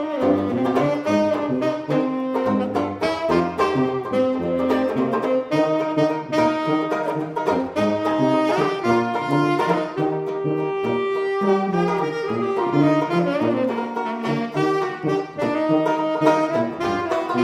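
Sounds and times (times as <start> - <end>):
banjo: 0.0 - 17.4.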